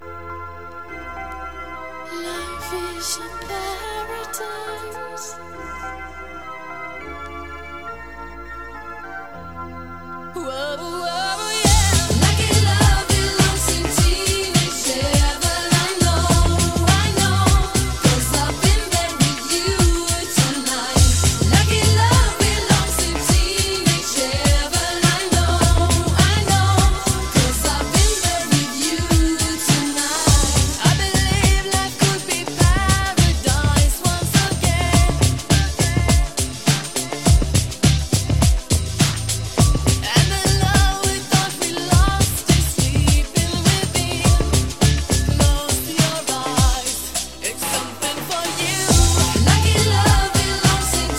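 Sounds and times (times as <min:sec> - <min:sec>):
European remix: 0:10.4 - 0:51.1.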